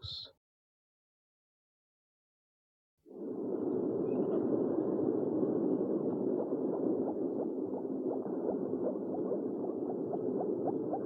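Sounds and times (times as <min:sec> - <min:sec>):
owl hooting: 0:03.2 - 0:11.0.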